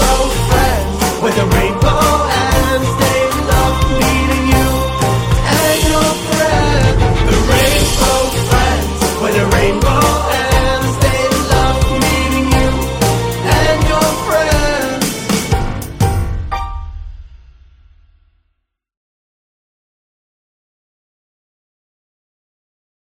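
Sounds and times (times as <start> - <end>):
instrumental horror music: 0.0 - 17.3.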